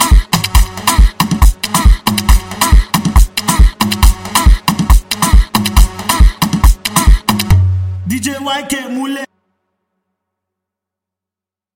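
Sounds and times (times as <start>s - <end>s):
dance music: 0.0s - 9.2s.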